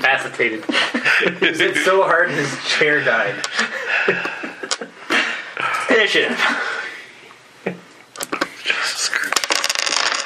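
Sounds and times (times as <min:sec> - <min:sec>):
speech: 0:00.2 - 0:04.4, 0:06.0 - 0:06.8
laughter: 0:00.6 - 0:02.5, 0:03.4 - 0:05.5
small hard objects clattering across a hard surface: 0:09.1 - 0:10.2.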